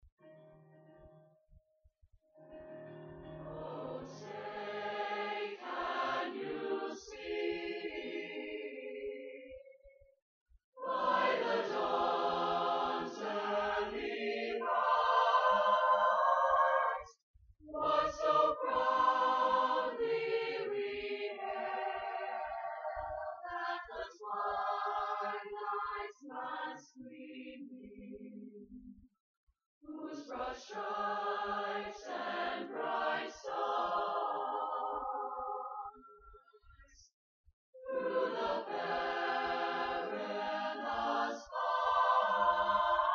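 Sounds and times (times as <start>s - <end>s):
chorus singing national anthem: 3.4s - 9.9s, 10.8s - 28.4s, 29.9s - 36.4s, 37.8s - 43.1s.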